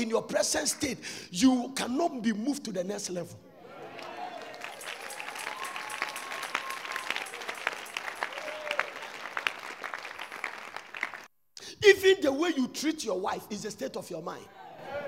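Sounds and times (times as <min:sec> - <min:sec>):
speech: 0:00.0 - 0:03.5, 0:11.8 - 0:14.6
audience applause: 0:03.7 - 0:11.3.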